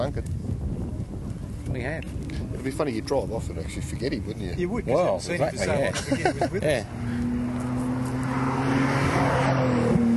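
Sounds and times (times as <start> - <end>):
speech: 0.0 - 0.4, 1.7 - 7.3
laughter: 5.6 - 6.9
Nissan GT-R race car passing: 6.6 - 10.1.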